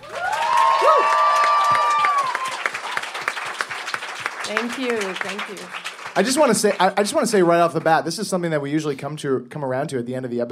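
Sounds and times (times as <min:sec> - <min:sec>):
audience whoops and cheers: 0:00.0 - 0:03.4
audience applause: 0:00.0 - 0:08.4
speech: 0:04.5 - 0:10.4.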